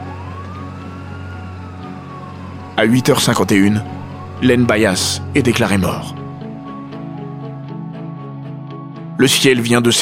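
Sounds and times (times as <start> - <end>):
siren of an arriving emergency rescue vehicle: 0.0 - 7.8
speech: 2.8 - 6.2, 9.2 - 10.0.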